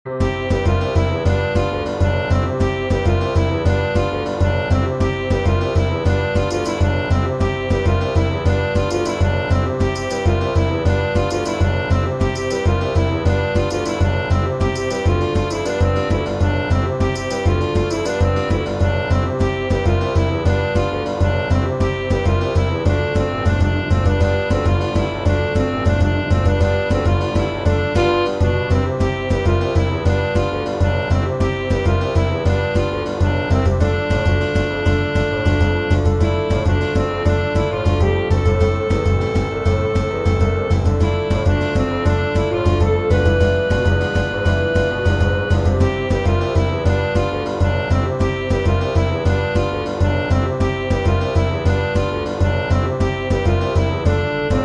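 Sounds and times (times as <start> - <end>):
samba music: 0.1 - 54.6.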